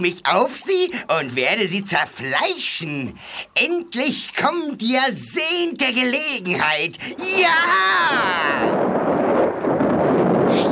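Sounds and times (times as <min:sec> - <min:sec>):
speech: 0:00.0 - 0:09.2
volcanoes erupting: 0:06.5 - 0:10.7.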